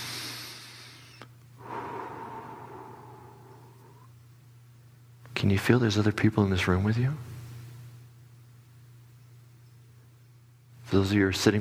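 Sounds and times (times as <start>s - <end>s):
deep breath in a guided group meditation: 0.0s - 4.2s
low steady hum: 0.0s - 11.5s
speech: 5.4s - 7.3s, 10.9s - 11.5s.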